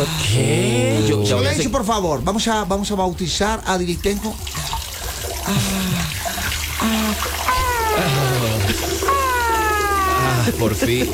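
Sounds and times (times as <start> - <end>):
laughter: 0.0 - 1.8, 7.5 - 11.1
speech: 0.0 - 4.8, 5.5 - 6.2, 10.6 - 11.1
water running from a tap: 3.2 - 11.1
cat meowing: 7.5 - 10.6.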